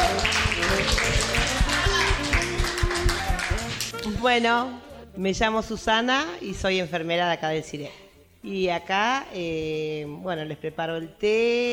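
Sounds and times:
many hand claps for a female colleague: 0.0 - 4.2
speech: 4.2 - 11.7.

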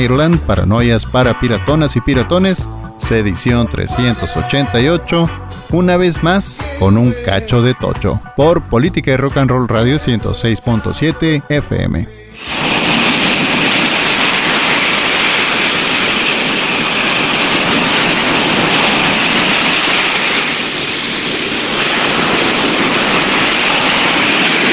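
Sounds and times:
speech: 0.0 - 12.7
ocean waves breaking into foam on shore: 12.4 - 24.7.

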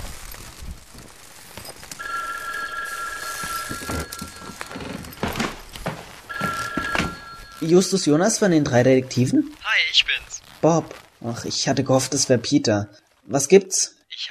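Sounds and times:
telephone ringing: 1.8 - 10.0
speech: 7.6 - 14.2.

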